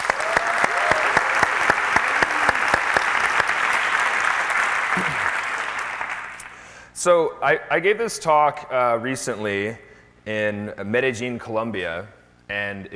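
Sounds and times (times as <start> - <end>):
conference audience applause: 0.0 - 6.6
speech: 7.0 - 12.9.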